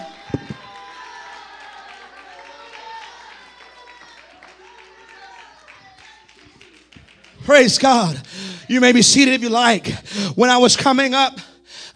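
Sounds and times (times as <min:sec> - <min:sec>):
audience clapping: 0:00.0 - 0:08.6
speech: 0:07.5 - 0:11.5.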